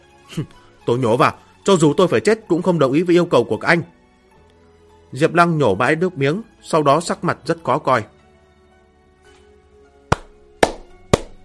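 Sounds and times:
speech: 0.3s - 4.0s, 5.1s - 8.2s
hands clapping: 10.1s - 11.4s.

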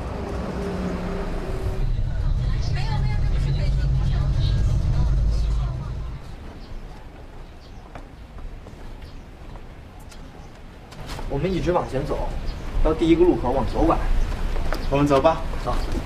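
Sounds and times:
city bus driving in traffic: 0.0s - 7.6s
road hum: 0.0s - 16.0s
speech: 11.3s - 14.2s, 14.9s - 16.0s.

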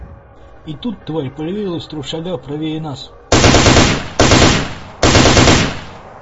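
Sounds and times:
speech: 0.6s - 3.9s
automatic gunfire bursts: 3.3s - 6.2s.

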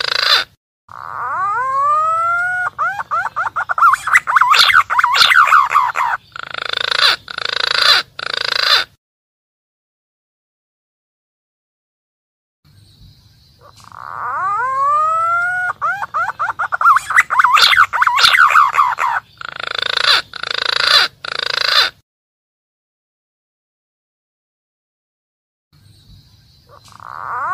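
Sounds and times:
green pigeon calling: 0.0s - 9.0s, 13.6s - 22.0s, 26.6s - 27.5s.

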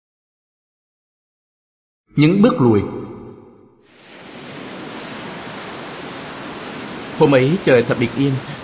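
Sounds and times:
speech: 2.2s - 3.0s, 7.2s - 8.6s
ocean waves washing onto sandy shore: 3.9s - 8.6s.

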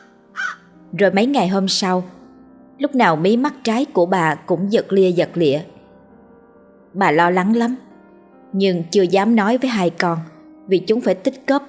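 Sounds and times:
crow cawing loudly: 0.0s - 0.6s
speech: 0.9s - 2.2s, 2.8s - 5.7s, 6.9s - 7.8s, 8.5s - 11.6s.

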